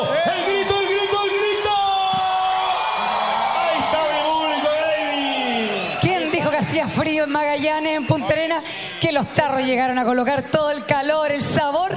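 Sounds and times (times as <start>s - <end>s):
audience applause: 0.0s - 8.8s
crowd cheering and whooping: 0.0s - 9.8s
speech: 7.2s - 11.9s.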